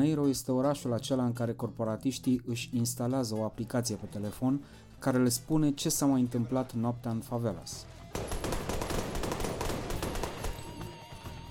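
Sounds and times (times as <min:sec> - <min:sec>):
speech: 0:00.0 - 0:08.4
burst of gunfire: 0:08.2 - 0:10.8.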